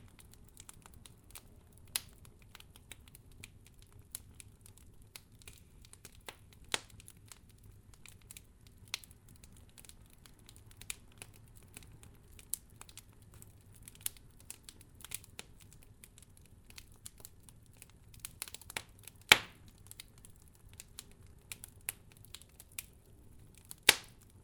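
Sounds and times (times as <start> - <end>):
fireplace crackling: 0.0 - 24.4.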